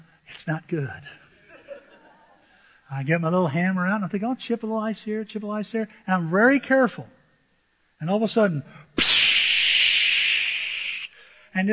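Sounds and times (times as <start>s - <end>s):
speech: 0.4s - 1.2s, 2.9s - 7.2s, 8.0s - 8.8s
laughter: 1.4s - 2.4s
refrigerant gas hissing out under pressure: 9.0s - 11.2s.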